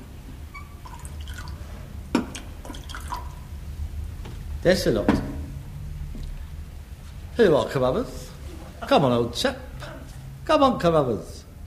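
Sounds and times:
low steady hum: 0.0 - 11.6
drink trickling into a glass: 0.8 - 1.7, 2.3 - 3.5
speech: 4.6 - 5.3, 7.4 - 8.3, 8.9 - 9.7, 10.5 - 11.6.

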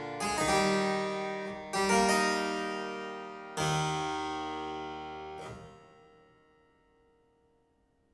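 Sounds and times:
harpsichord sarabande in E minor: 0.0 - 5.7.

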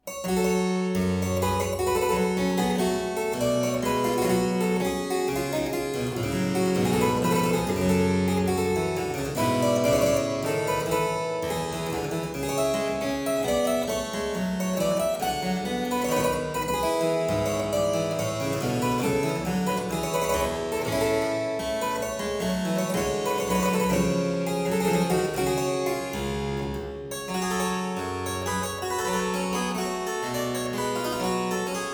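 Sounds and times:
harpsichord playing a courante from a suite: 0.1 - 31.9.

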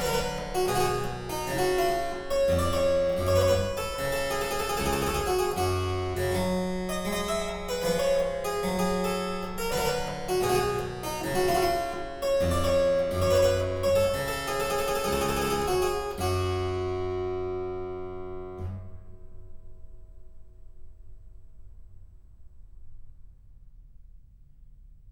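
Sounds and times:
harpsichord saraband in G minor: 0.0 - 18.8.

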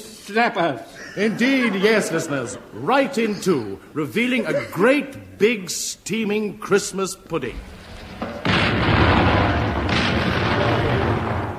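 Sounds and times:
speech: 0.3 - 7.9
laughter: 0.8 - 5.2
artillery firing over open sights: 7.7 - 11.5.

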